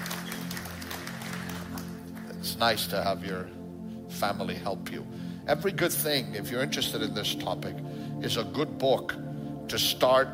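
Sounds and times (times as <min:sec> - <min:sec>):
audience hand clapping: 0:00.0 - 0:02.4
speech: 0:02.5 - 0:03.6, 0:04.2 - 0:10.3.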